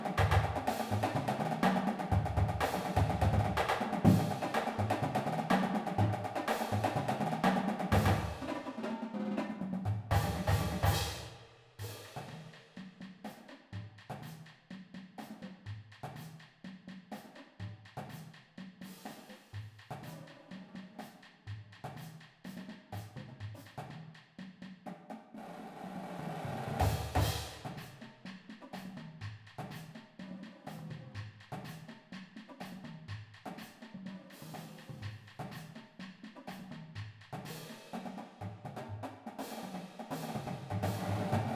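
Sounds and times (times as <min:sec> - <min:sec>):
full drumline playing: 0:00.0 - 0:11.3, 0:25.4 - 0:29.0, 0:31.4 - 0:41.5.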